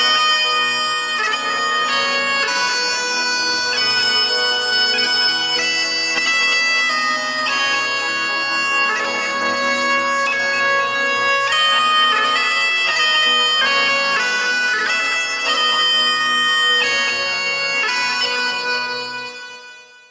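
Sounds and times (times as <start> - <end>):
bagpipes playing: 0.0 - 20.0.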